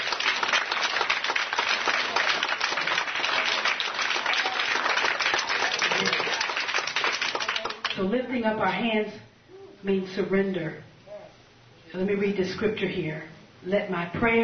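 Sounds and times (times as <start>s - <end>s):
audience applause: 0.0s - 8.0s
speech: 8.0s - 10.9s, 11.9s - 14.4s.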